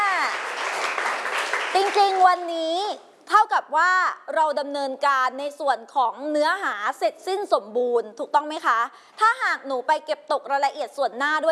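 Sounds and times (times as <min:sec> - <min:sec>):
classroom applause for student groups: 0:00.0 - 0:02.4
speech: 0:01.8 - 0:11.5.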